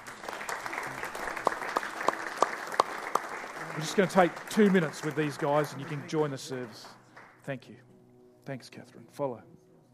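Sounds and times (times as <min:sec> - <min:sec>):
audience clapping during a church service: 0:00.0 - 0:07.5
speech: 0:03.8 - 0:07.9, 0:08.5 - 0:09.6.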